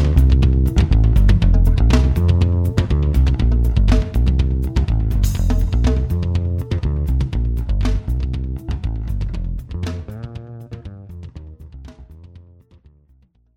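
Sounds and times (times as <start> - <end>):
bass phrases: 0.0 - 13.5.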